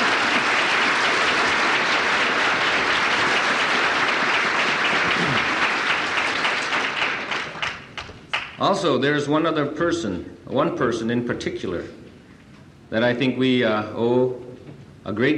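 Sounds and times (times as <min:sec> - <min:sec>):
audience applause: 0:00.0 - 0:08.6
speech: 0:08.6 - 0:12.0, 0:12.9 - 0:15.3.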